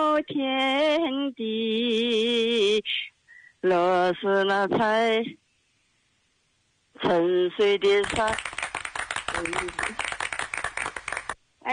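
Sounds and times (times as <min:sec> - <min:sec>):
speech: 0:00.2 - 0:05.4, 0:07.0 - 0:08.5, 0:09.4 - 0:10.0
hands clapping to encourage a nervous singer: 0:08.0 - 0:11.4.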